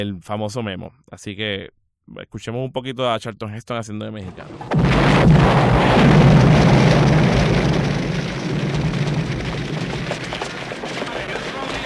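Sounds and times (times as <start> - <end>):
speech: 0.0 - 6.1
car explosion in film clip: 4.3 - 11.8.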